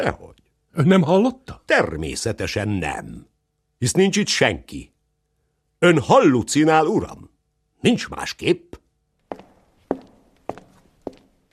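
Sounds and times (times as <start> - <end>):
speech: 0.0 - 4.9, 5.8 - 8.8
footsteps clattering through rooms: 9.2 - 11.5.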